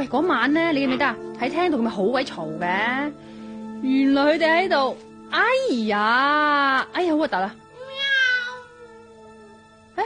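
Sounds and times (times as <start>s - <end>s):
speech: 0.0s - 7.6s
pregnant cat about to give birth meowing: 7.8s - 9.2s.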